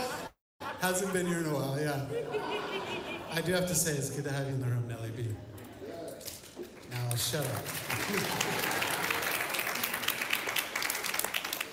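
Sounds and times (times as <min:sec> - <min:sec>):
laughter: 0:00.0 - 0:04.1, 0:07.8 - 0:09.9
speech: 0:00.8 - 0:05.6, 0:06.9 - 0:08.9
audience applause: 0:06.7 - 0:11.7.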